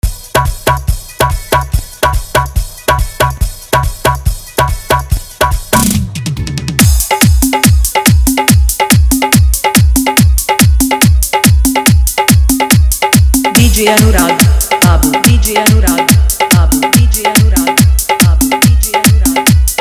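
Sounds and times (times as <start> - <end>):
hard dholki bass mix: 0.0 - 19.8.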